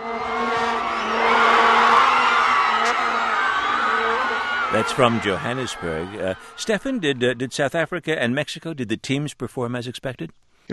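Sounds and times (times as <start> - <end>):
droning horn tones: 0.0 - 7.0
crowd cheering after a football goal: 0.0 - 7.7
speech: 4.8 - 10.7.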